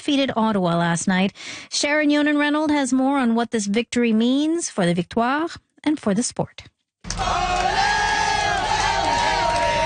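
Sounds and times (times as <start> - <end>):
speech: 0.0 - 7.9
fans cheering to welcome the Montreal Victoire team off the bus: 7.1 - 9.8.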